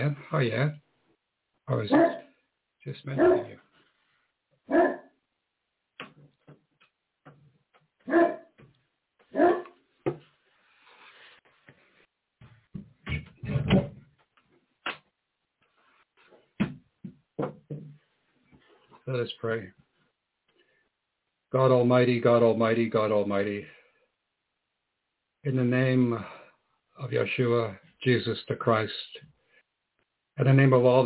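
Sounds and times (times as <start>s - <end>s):
speech: 0.0s - 0.8s, 1.7s - 2.2s, 2.8s - 3.6s, 19.1s - 19.8s, 21.5s - 23.8s, 25.4s - 26.4s, 27.0s - 29.3s, 30.4s - 31.0s
dog barking: 1.9s - 2.3s, 3.2s - 3.6s, 4.7s - 5.1s, 8.1s - 8.5s, 9.3s - 9.8s.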